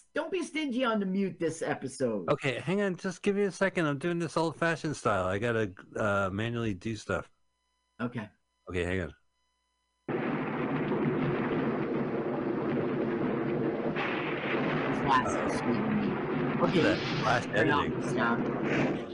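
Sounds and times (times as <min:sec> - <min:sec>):
speech: 0:00.2 - 0:07.3, 0:08.0 - 0:09.2, 0:16.6 - 0:19.1
thunderstorm with deep continuous rumbling thunder: 0:10.1 - 0:19.1.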